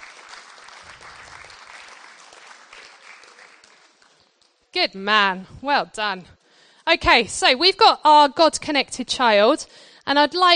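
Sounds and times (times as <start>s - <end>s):
audience applauding: 0.0s - 4.6s
speech: 4.8s - 10.5s.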